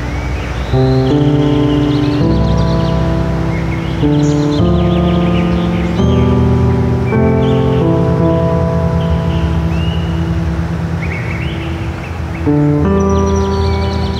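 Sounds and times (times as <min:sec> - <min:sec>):
birds singing: 0:00.0 - 0:14.1.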